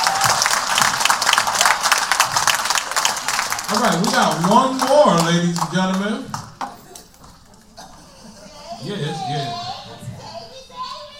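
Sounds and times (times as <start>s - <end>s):
audience applause: 0.0s - 6.8s
speech: 3.7s - 6.4s, 8.8s - 9.7s.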